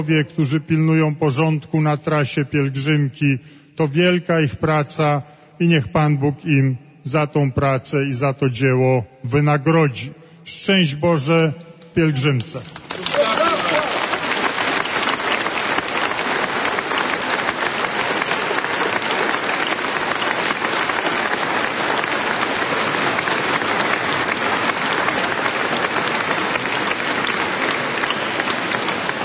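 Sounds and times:
speech: 0.0s - 13.2s
thunderous applause from a large pilgrimage crowd: 12.6s - 29.2s.

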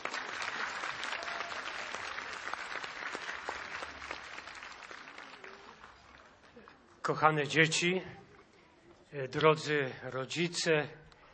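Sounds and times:
large audience applause: 0.0s - 6.6s
speech: 7.1s - 8.2s, 9.1s - 11.0s.

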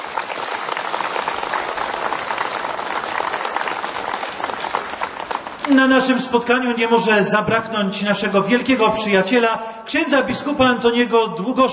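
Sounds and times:
audience applause: 0.0s - 6.1s
speech: 5.7s - 11.7s.

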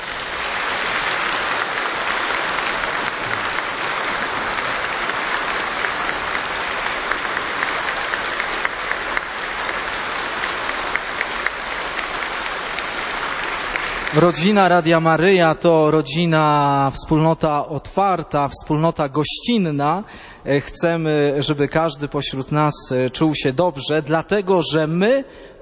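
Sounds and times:
audience applause: 0.0s - 14.9s
speech: 14.2s - 25.5s.

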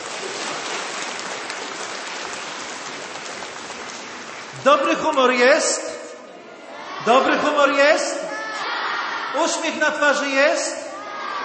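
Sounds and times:
crowd clapping warmly: 0.0s - 5.2s
speech: 4.6s - 5.8s, 7.0s - 8.2s, 9.3s - 10.8s.

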